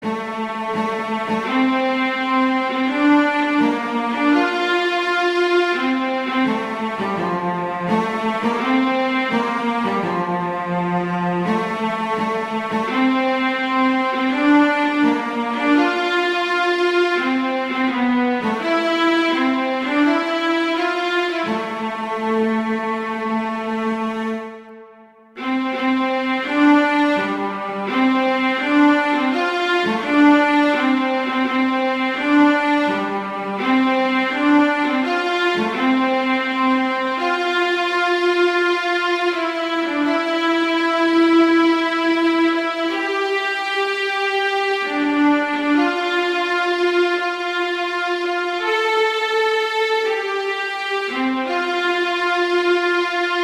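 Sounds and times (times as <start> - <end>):
viola: 0.0 - 53.4.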